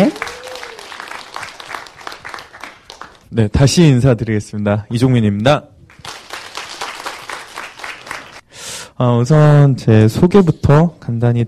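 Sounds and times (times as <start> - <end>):
audience applause: 0.0 - 3.3, 5.9 - 8.4
speech: 3.3 - 5.7, 9.0 - 11.4.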